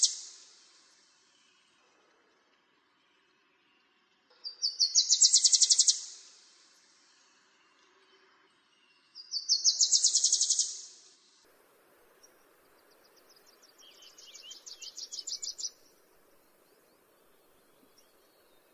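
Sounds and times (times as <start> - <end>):
Wilson's warbler song: 0.0 - 0.5, 4.5 - 6.4, 9.3 - 11.0, 12.0 - 18.7.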